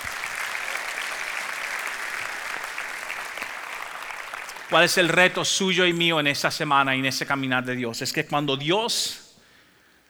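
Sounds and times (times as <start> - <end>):
audience applause: 0.0 - 5.8
speech: 4.7 - 9.2.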